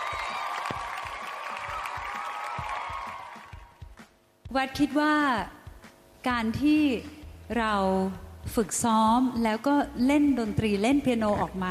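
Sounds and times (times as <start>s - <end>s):
audience applause: 0.0s - 3.8s
speech: 4.5s - 5.6s, 6.2s - 11.6s.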